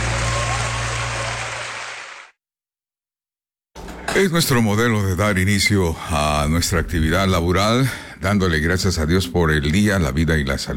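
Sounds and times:
audience applause: 0.0 - 2.4
speech: 4.2 - 10.7.

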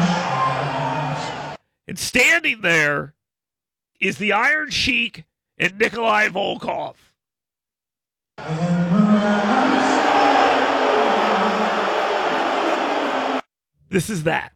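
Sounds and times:
arena crowd booing a wrestler's entrance: 0.0 - 1.6, 8.4 - 13.5
speech: 1.9 - 3.2, 4.0 - 7.1, 8.4 - 9.6, 13.9 - 14.5.

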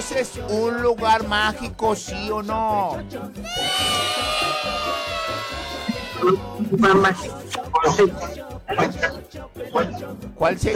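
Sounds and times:
speech: 0.0 - 10.7
excited high shouts: 3.4 - 8.2
crowd cheering: 3.5 - 7.3.

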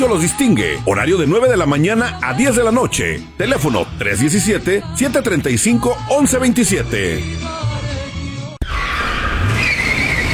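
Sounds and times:
speech: 0.0 - 7.7
car tires squealing in a skid: 8.6 - 10.3.

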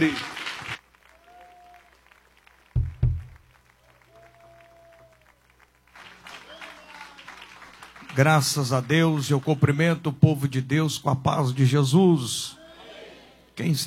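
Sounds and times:
speech: 0.0 - 0.3, 8.2 - 12.6, 13.6 - 13.8
church audience applause: 0.0 - 9.7.

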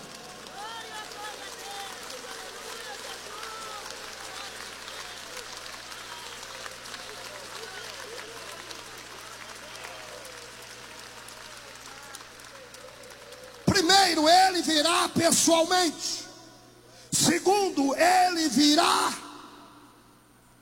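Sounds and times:
audience applause: 0.0 - 15.1
speech: 14.1 - 16.2, 17.4 - 19.2.

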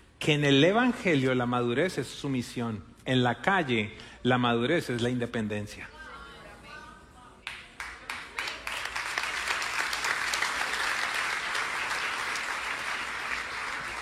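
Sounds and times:
speech: 0.2 - 5.9
audience applause: 7.8 - 14.0.

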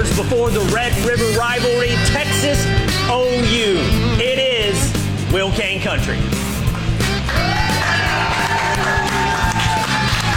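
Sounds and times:
speech: 0.2 - 6.4
outdoor crowd cheering at state fair: 7.2 - 10.3.

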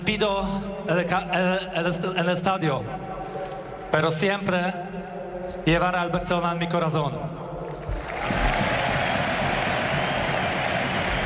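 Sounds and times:
speech: 0.1 - 3.1, 3.9 - 4.9, 5.6 - 7.4
stadium applause at Camp Nou: 7.8 - 11.2.

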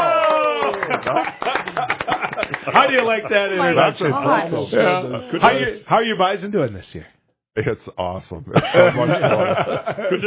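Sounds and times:
audience applause greeting a guest: 0.0 - 3.6
laughter: 0.3 - 5.7, 8.5 - 10.2
speech: 1.0 - 1.6, 2.6 - 10.2.

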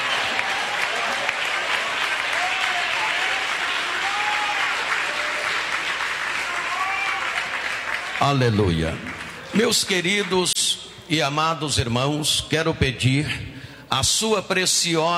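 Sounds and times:
faint cheering voices: 0.0 - 8.1
audience clapping hands: 0.0 - 10.6
speech: 8.3 - 10.5, 11.1 - 15.1.

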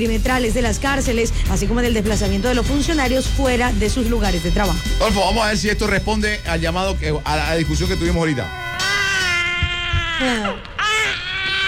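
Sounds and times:
speech: 0.0 - 8.6, 10.2 - 10.7
infant crying: 8.3 - 11.6.

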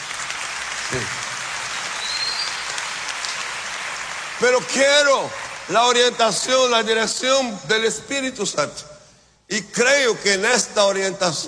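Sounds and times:
audience applauding: 0.0 - 6.8
speech: 0.9 - 1.3, 4.4 - 11.4.

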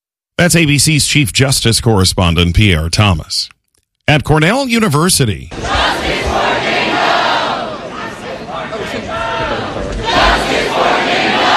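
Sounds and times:
speech: 0.4 - 6.1
crowd of protesters shouting in unison: 5.5 - 11.5.

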